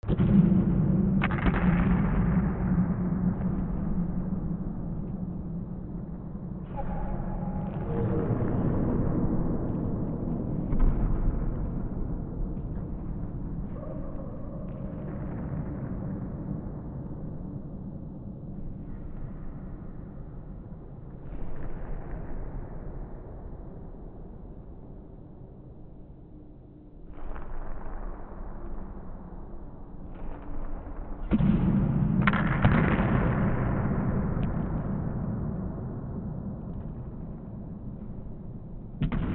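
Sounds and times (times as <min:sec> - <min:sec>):
ambience: 0:00.0 - 0:39.3.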